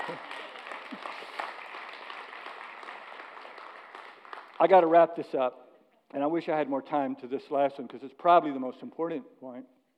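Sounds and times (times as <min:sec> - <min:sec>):
audience applause: 0:00.0 - 0:04.7
speech: 0:04.6 - 0:09.8.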